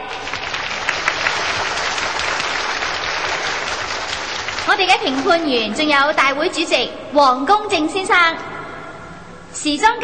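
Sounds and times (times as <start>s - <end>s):
audience applause: 0.0s - 6.2s
speech: 4.8s - 8.5s, 9.6s - 10.0s.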